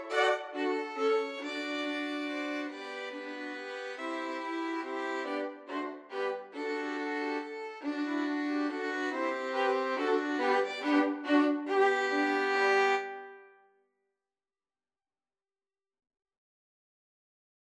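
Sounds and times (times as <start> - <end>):
violin quartet playing a minuet: 0.0 - 13.3.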